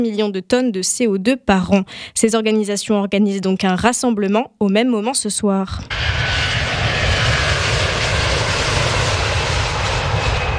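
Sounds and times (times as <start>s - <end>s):
speech: 0.0s - 6.8s
airplane flying overhead near airport: 5.8s - 10.5s.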